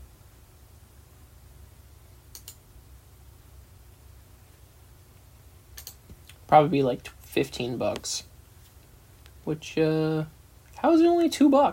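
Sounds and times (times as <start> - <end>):
faint steady hiss: 0.0 - 11.7
computer mouse clicks: 2.3 - 2.6, 5.8 - 6.1
speech: 6.5 - 8.3, 9.5 - 11.7.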